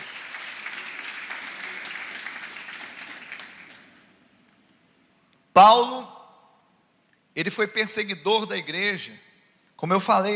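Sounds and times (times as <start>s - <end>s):
church audience applauding: 0.0s - 4.2s
speech: 5.6s - 6.1s, 7.4s - 10.3s.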